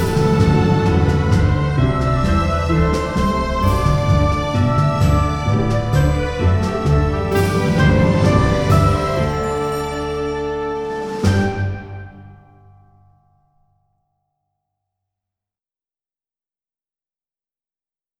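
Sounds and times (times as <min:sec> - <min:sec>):
stereo music: 0:00.0 - 0:14.4.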